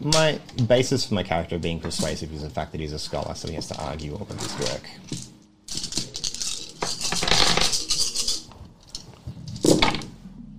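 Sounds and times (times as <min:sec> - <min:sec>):
speech: 0:00.0 - 0:05.3
large handful of dice rattling across a hard surface: 0:05.7 - 0:08.4.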